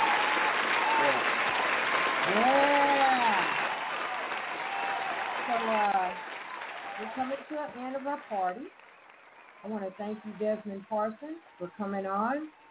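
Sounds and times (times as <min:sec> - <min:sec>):
voices whooping and cheering: 0:00.0 - 0:10.0
audience applause: 0:00.0 - 0:10.8
speech: 0:07.2 - 0:08.8, 0:09.6 - 0:12.6.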